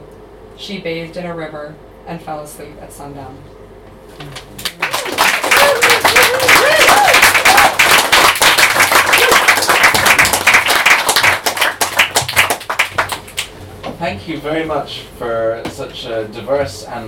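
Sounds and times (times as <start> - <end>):
speech: 0.6 - 3.6, 4.2 - 4.4, 14.0 - 17.0
audience applause after a poetry reading: 4.6 - 13.5.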